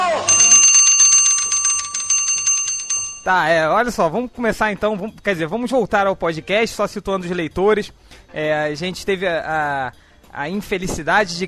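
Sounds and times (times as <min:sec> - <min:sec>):
mechanical alarm clock bell ringing: 0:00.2 - 0:03.5
speech: 0:03.2 - 0:11.4.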